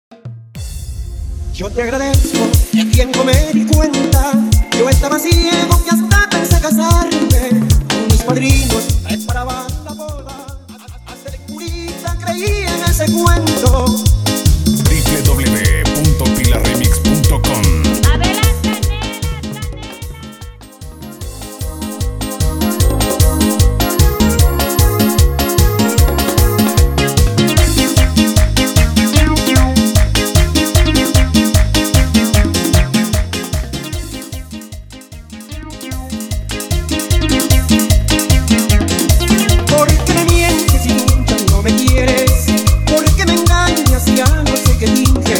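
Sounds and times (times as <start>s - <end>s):
instrumental music: 2.1s - 45.3s.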